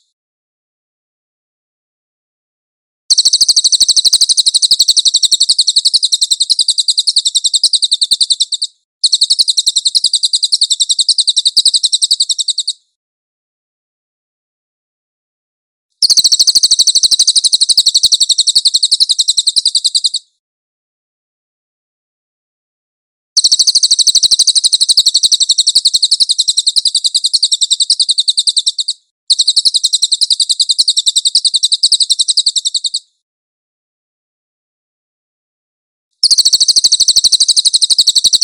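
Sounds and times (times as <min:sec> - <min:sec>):
song: 0:03.1 - 0:12.7, 0:16.0 - 0:20.2, 0:23.4 - 0:33.0, 0:36.2 - 0:38.4.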